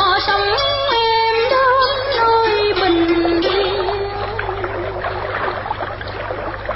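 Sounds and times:
river water lapping boat: 0.2 - 6.7
oars rowing: 2.6 - 6.7.

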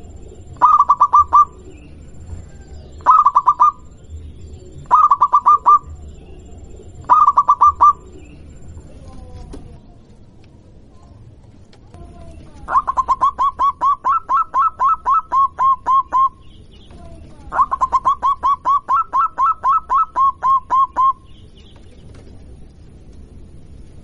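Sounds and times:
local-type zebra dove song: 0.0 - 2.4, 3.0 - 8.7, 12.4 - 22.2.

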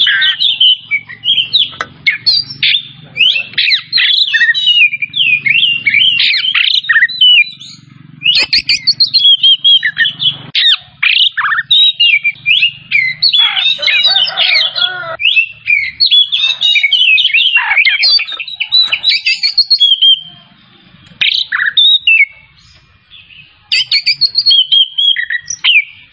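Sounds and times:
Oriental magpie-robin singing: 0.0 - 26.1.

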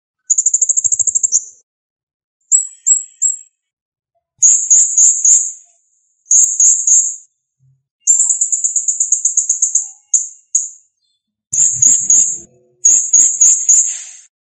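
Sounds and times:
blue-crowned hanging parrot high thin shrill song and trills: 2.5 - 3.6, 4.4 - 7.3, 8.0 - 10.9, 11.6 - 14.3.

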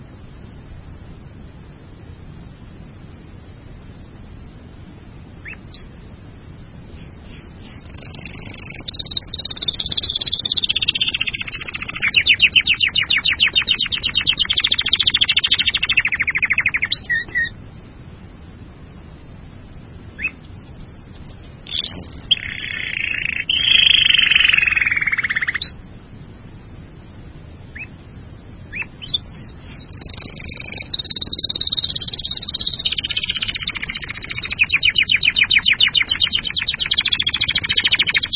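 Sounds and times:
bird trilling song: 5.4 - 5.9, 6.9 - 17.6, 20.2 - 25.8, 27.7 - 28.0, 28.7 - 38.3.

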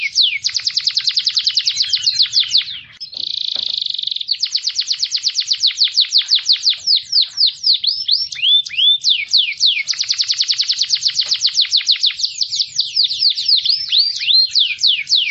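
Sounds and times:
canary singing rattling trills and swooping whistles: 0.0 - 15.3.

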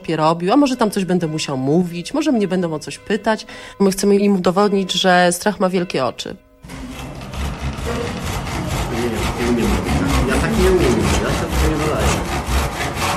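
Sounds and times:
speech: 0.0 - 6.4
hand saw cutting wood: 6.6 - 13.1
faint voices murmuring: 6.7 - 12.3.

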